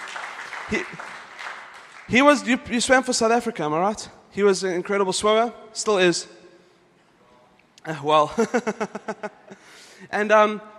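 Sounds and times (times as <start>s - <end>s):
audience applause for a swimmer: 0.0s - 2.3s
speech: 0.7s - 1.1s, 2.1s - 6.4s, 7.8s - 10.7s
laughter: 8.3s - 9.7s.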